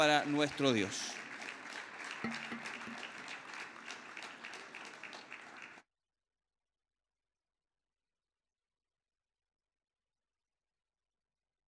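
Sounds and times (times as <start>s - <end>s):
speech: 0.0s - 1.2s, 2.2s - 3.1s
audience applause: 0.0s - 5.8s.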